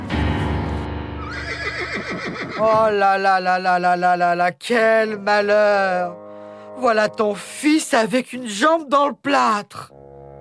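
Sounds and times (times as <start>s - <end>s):
agitated horse neighing: 1.2s - 2.8s
speech: 2.6s - 6.2s, 6.8s - 10.0s.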